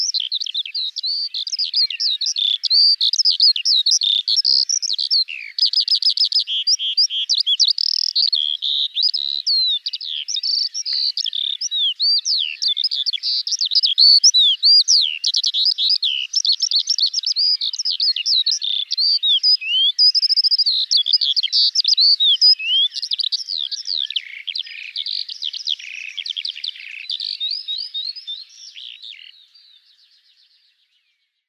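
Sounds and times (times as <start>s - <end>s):
skylark singing: 0.0s - 29.9s.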